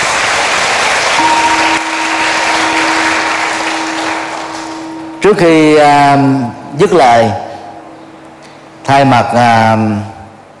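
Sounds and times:
audience applause: 0.0s - 5.2s
speech: 5.2s - 7.4s, 8.9s - 10.1s.

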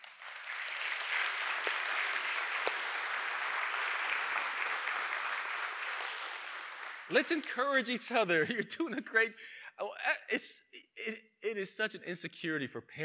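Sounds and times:
audience clapping: 0.0s - 8.6s
speech: 7.1s - 13.0s.

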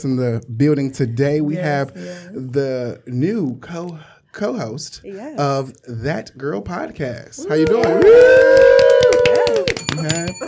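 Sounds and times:
speech: 0.0s - 8.8s
bell ringing: 9.5s - 10.4s.

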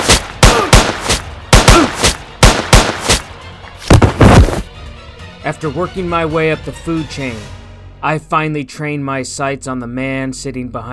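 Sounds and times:
gunshots hitting a door: 0.0s - 3.2s
speech: 5.5s - 10.9s.

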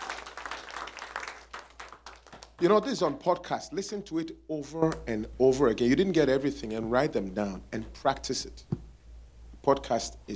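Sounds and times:
audience clapping: 0.0s - 3.4s
speech: 2.6s - 8.8s, 9.6s - 10.3s.

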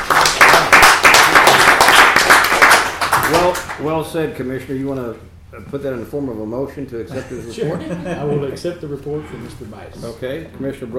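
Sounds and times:
crowd applause: 0.0s - 3.7s
speech: 3.5s - 10.9s
laughter: 7.1s - 8.6s.

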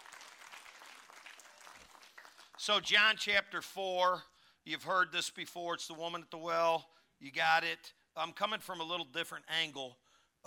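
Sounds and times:
audience applauding: 0.0s - 2.7s
speech: 2.6s - 10.4s.

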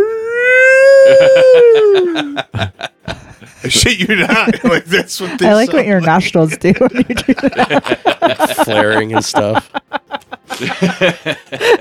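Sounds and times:
person imitating a Sasquatch call: 0.0s - 2.5s
people laughing: 1.0s - 11.7s
speech: 1.1s - 2.9s, 3.6s - 9.8s, 10.6s - 11.7s.

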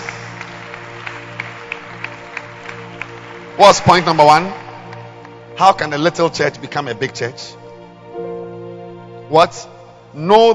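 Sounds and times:
audience clapping hands in a steady rhythm: 0.0s - 6.6s
speech: 3.6s - 4.6s, 5.6s - 7.6s, 9.3s - 10.5s.

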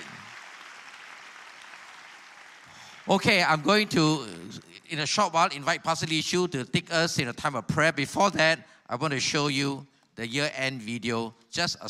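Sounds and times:
audience clapping: 0.0s - 4.8s
speech: 3.1s - 11.8s.

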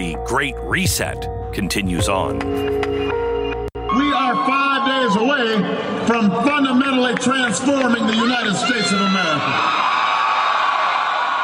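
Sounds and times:
speech: 0.0s - 3.2s, 4.0s - 9.9s
crowd applauding thunderously: 6.5s - 11.4s.

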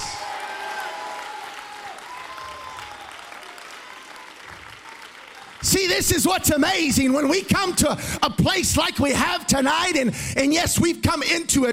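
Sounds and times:
voices cheering: 0.0s - 7.9s
audience clapping hands: 0.0s - 8.1s
speech: 5.6s - 11.7s.

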